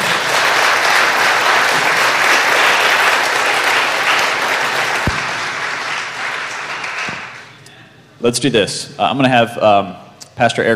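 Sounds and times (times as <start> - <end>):
audience applause: 0.0 - 7.5
speech: 8.2 - 10.7.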